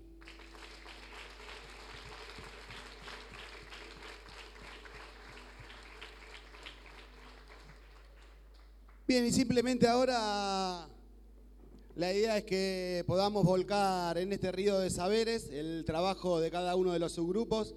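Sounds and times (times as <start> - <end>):
workshop audience applause: 0.2 - 9.1
speech: 9.1 - 10.9, 12.0 - 17.7.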